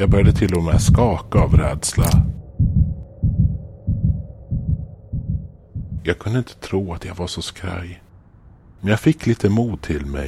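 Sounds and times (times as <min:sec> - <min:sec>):
speech: 0:00.0 - 0:02.4, 0:06.0 - 0:08.0, 0:08.8 - 0:10.2
rapid heartbeat: 0:00.0 - 0:06.1
faint continuous hum: 0:00.0 - 0:10.2.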